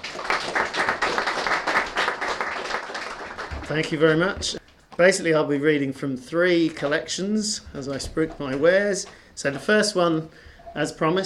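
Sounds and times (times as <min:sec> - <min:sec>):
audience applause welcoming a speaker at a poetry reading: 0:00.0 - 0:04.6
speech: 0:03.7 - 0:11.2.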